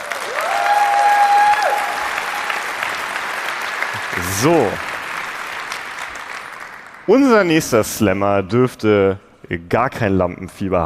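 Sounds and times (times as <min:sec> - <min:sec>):
poetry slam audience applause: 0:00.0 - 0:07.5
speech: 0:04.4 - 0:04.9, 0:07.1 - 0:10.8.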